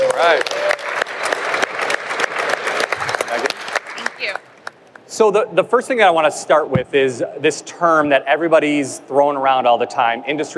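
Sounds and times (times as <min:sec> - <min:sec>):
audience applause welcoming a speaker at a manufacturing event: 0:00.0 - 0:04.8
speech: 0:00.2 - 0:00.6, 0:05.2 - 0:10.5.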